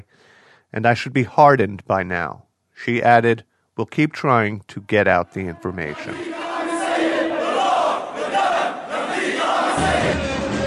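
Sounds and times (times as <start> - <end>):
speech: 0.7 - 6.3
crowd chanting and shouting in the streets of Homs during a tribute: 5.8 - 10.6.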